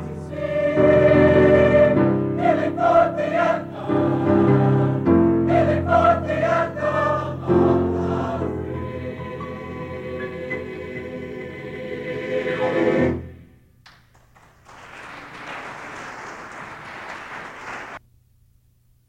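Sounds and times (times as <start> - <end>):
chorus singing a hymn: 0.0 - 13.6.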